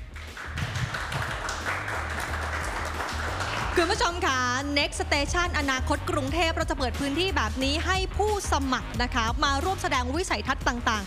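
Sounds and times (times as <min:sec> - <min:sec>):
audience clapping: 0:00.0 - 0:04.5
speech: 0:03.8 - 0:11.0.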